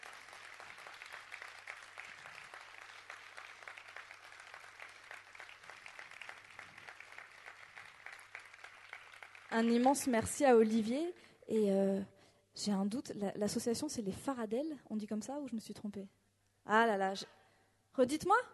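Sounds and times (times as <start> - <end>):
crowd applause: 0.0 - 9.5
speech: 9.5 - 17.4, 18.0 - 18.5.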